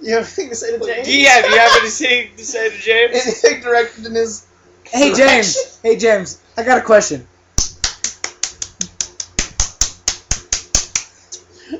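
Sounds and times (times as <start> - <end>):
speech: 0.0 - 7.3
laughter: 0.9 - 2.0
lips clapping together: 7.6 - 11.5.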